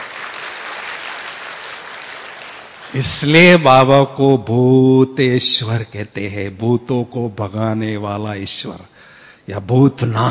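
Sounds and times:
crowd clapping: 0.0s - 3.0s
speech: 2.9s - 8.9s, 9.5s - 10.2s.

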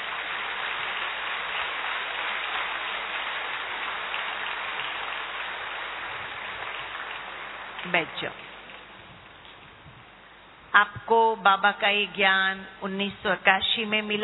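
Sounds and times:
loud audience applause: 0.0s - 8.7s
speech: 7.9s - 8.5s, 10.8s - 14.2s.

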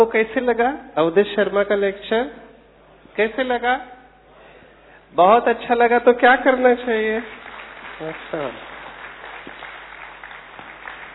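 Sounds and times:
speech: 0.0s - 2.4s, 3.2s - 4.0s, 5.1s - 7.4s, 8.0s - 8.7s
audience applause after a lecture: 7.2s - 11.1s.

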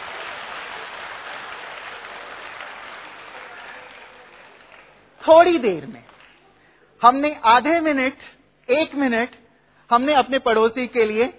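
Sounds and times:
audience clapping: 0.0s - 6.6s
speech: 5.2s - 6.1s, 7.0s - 11.3s.

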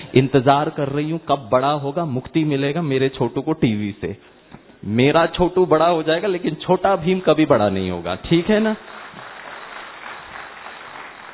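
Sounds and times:
speech: 0.1s - 8.9s
audience clapping at a live show: 8.3s - 11.3s.

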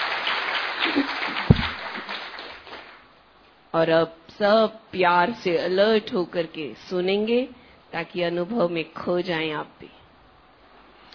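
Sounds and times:
audience applause: 0.0s - 3.0s
speech: 3.7s - 10.0s.

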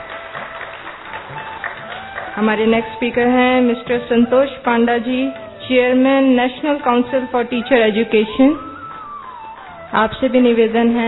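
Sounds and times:
audience applause: 0.0s - 2.6s
speech: 2.4s - 8.7s, 9.9s - 11.0s.

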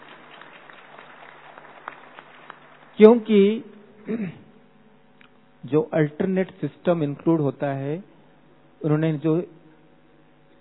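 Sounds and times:
audience clapping during a talk about heart patients: 0.0s - 3.3s
speech: 3.0s - 4.4s, 5.6s - 8.1s, 8.8s - 9.6s.

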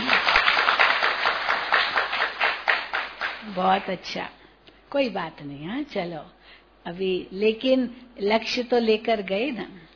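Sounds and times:
class applauding a student: 0.0s - 3.9s
speech: 3.6s - 9.9s.

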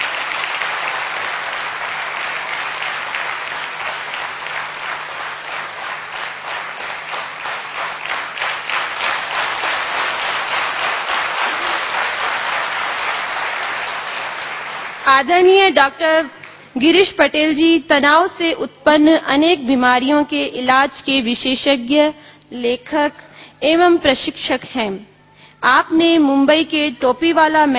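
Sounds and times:
thunderous audience applause: 0.0s - 15.1s
speech: 15.1s - 27.7s.

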